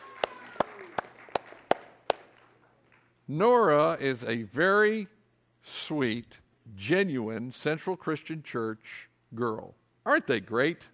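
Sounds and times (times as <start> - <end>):
hand claps: 0.0 - 3.1
speech: 3.3 - 10.9.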